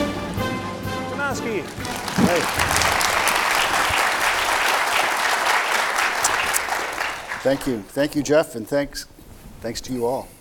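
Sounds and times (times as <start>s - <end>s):
large audience applauding: 0.0s - 0.6s, 1.3s - 7.9s
speech: 1.3s - 2.9s, 7.4s - 10.3s.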